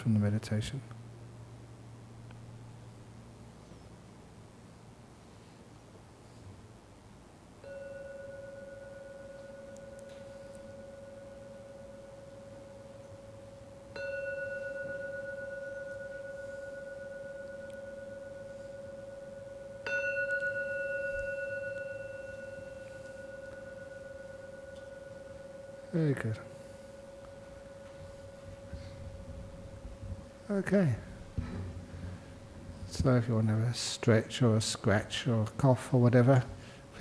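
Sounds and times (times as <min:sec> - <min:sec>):
speech: 0:00.0 - 0:01.0, 0:26.1 - 0:26.5, 0:30.5 - 0:31.0, 0:33.0 - 0:36.9
meditation gong ringing: 0:07.6 - 0:34.4.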